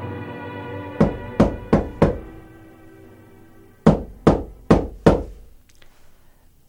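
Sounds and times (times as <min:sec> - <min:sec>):
knocking on a door: 0:01.0 - 0:02.5, 0:03.8 - 0:05.6.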